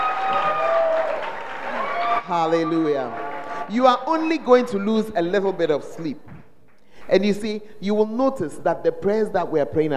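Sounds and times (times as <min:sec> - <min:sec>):
audience clapping: 0:00.0 - 0:04.7
speech: 0:02.3 - 0:06.4, 0:07.1 - 0:09.9.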